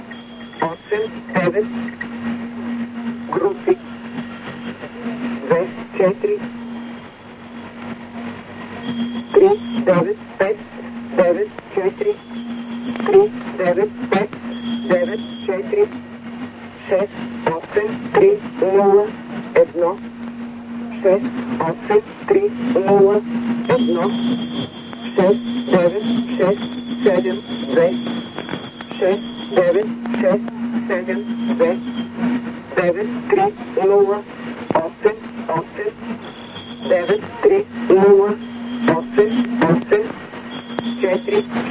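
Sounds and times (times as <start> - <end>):
drums: 0.0 - 41.6.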